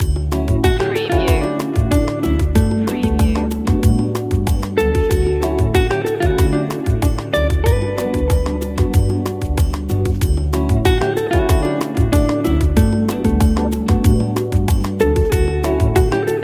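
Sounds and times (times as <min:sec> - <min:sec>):
smooth bossa nova loop: 0:00.0 - 0:16.4.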